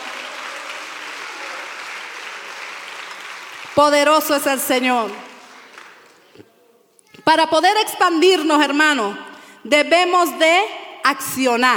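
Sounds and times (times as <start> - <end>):
audience clapping hands: 0.0 - 6.4
speech: 3.7 - 5.3, 7.3 - 11.7.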